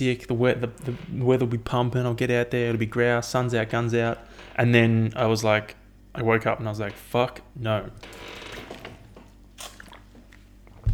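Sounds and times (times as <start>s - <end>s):
speech: 0.0s - 8.5s
steady low hum: 0.0s - 10.9s
chair creaking and squeaking: 0.6s - 1.4s, 4.1s - 4.9s, 6.8s - 7.2s, 7.8s - 10.9s.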